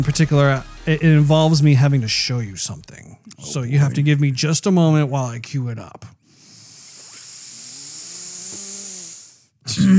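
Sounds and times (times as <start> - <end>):
speech: 0.0 - 6.2, 9.7 - 9.9
breathing through a clogged nostril: 6.2 - 9.6.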